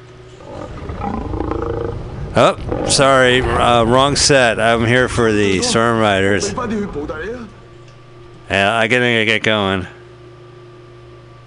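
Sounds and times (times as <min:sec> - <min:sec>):
dragon roar sound effect: 0:00.4 - 0:04.3
speech: 0:02.4 - 0:07.4, 0:08.5 - 0:10.0.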